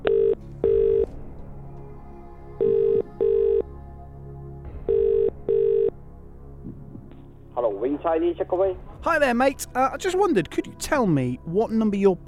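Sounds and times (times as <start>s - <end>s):
telephone ringing tone: 0.0s - 1.1s, 2.6s - 3.6s, 4.9s - 5.9s
speech: 8.0s - 12.2s.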